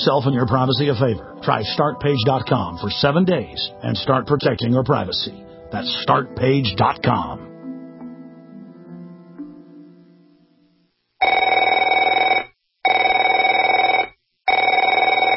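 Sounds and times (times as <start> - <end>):
speech: 0.0 - 7.5
telephone ringing with a bright buzzy electronic trill: 11.2 - 15.3.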